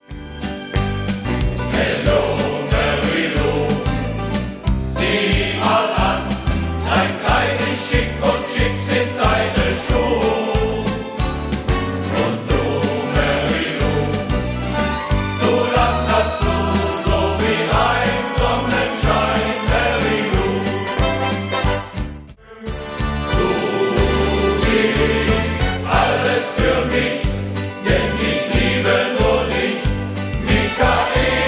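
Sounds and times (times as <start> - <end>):
schlager music: 0.0 - 31.4.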